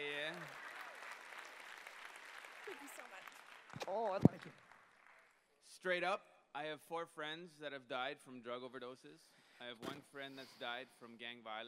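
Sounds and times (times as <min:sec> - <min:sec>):
audience applause: 0:00.0 - 0:05.4
speech: 0:03.9 - 0:04.6, 0:05.8 - 0:11.6.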